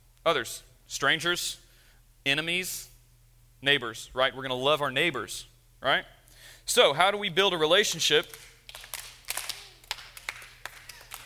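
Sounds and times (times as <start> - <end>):
speech: 0.2 - 1.6, 2.2 - 2.9, 3.6 - 8.8
scattered hand claps: 8.2 - 11.2.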